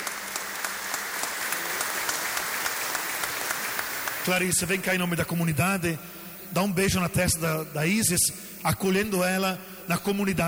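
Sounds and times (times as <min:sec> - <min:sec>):
audience applause: 0:00.0 - 0:04.8
speech: 0:04.2 - 0:10.4.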